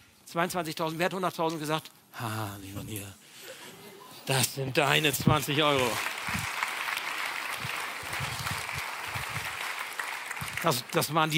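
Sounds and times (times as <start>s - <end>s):
speech: 0.3s - 3.4s, 4.3s - 6.5s, 10.6s - 11.3s
audience clapping: 5.1s - 11.3s.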